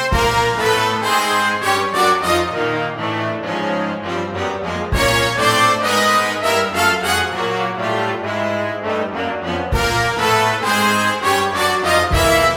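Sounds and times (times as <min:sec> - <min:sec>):
MIDI band music with saxophone: 0:00.0 - 0:12.5.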